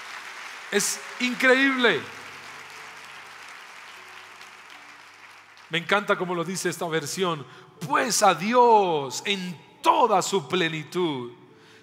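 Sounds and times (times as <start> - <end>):
audience applauding: 0.0 - 6.7
speech: 0.7 - 2.2, 5.7 - 11.4.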